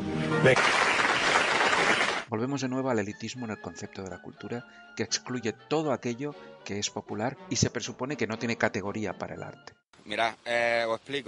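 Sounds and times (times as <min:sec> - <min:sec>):
applause: 0:00.3 - 0:02.3
speech: 0:00.4 - 0:00.9, 0:02.3 - 0:11.2.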